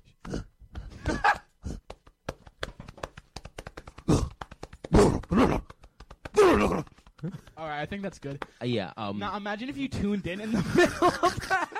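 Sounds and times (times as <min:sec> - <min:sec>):
person imitating a gorilla with grunts, huffs and hoots: 0:00.2 - 0:02.0, 0:04.0 - 0:07.4
speech: 0:07.6 - 0:11.7
laughter: 0:10.2 - 0:11.7.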